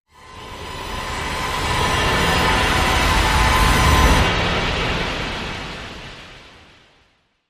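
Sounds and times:
tension swell: 0.2 - 6.7.

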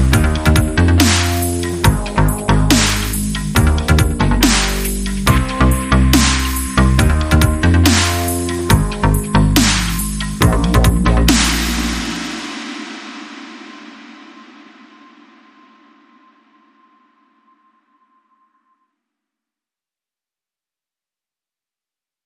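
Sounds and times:
chillstep drum and bass beat: 0.0 - 16.3.

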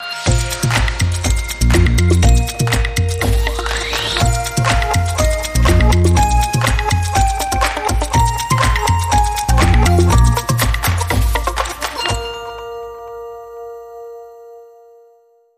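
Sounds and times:
toddlers techno music: 0.2 - 12.2.

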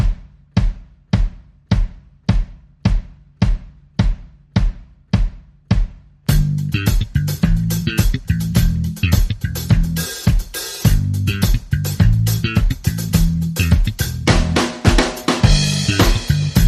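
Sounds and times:
drums: 0.0 - 16.6
bass: 6.2 - 16.6.

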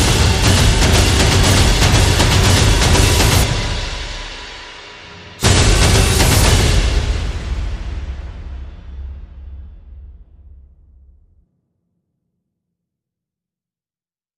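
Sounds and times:
sound effects: 0.0 - 4.0, 5.4 - 9.0
percussion: 0.0 - 11.4.

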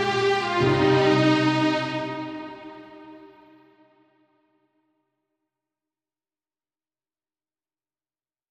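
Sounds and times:
strings: 0.0 - 4.0.

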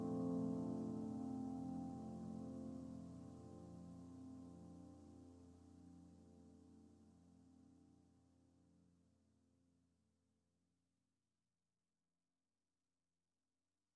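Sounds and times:
solo piano: 0.0 - 7.9.

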